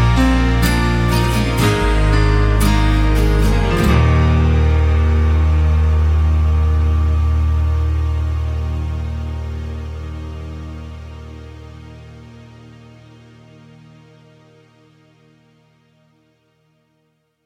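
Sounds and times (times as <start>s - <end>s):
performance track in the key of E-flat: 0.0s - 12.2s.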